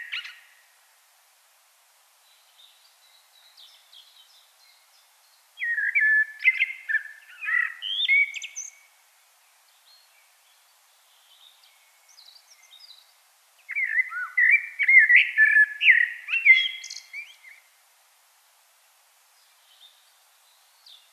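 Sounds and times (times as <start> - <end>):
common blackbird singing fluted whistles: 5.6 - 8.8, 13.7 - 17.6.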